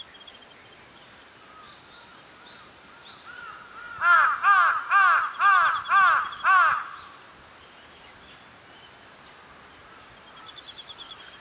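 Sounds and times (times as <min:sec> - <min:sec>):
background hiss: 0:00.0 - 0:11.3
crow cawing: 0:03.3 - 0:07.1.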